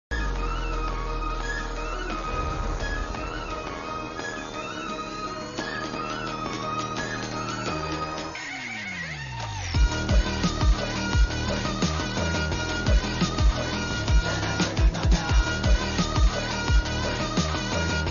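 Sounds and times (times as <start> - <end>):
movie interval background music ringtone: 0.1 - 18.0.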